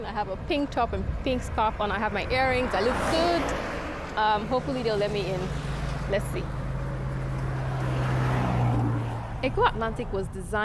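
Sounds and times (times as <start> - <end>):
speech: 0.0 - 6.6, 9.4 - 10.6
noisy blue Toyota Matrix engine driving up to a gate: 0.4 - 10.6.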